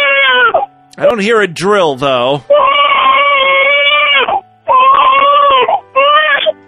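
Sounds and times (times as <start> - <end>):
baby crying: 0.0 - 0.7, 2.5 - 6.6
speech: 1.0 - 2.7.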